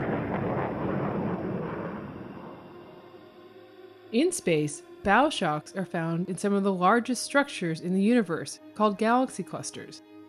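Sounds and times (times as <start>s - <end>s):
sonic boom: 0.0s - 3.2s
speech: 4.1s - 10.1s.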